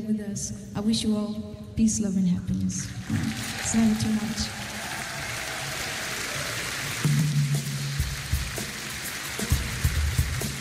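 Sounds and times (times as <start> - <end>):
speech: 0.1 - 4.7
audience applause after a concert: 2.9 - 10.6.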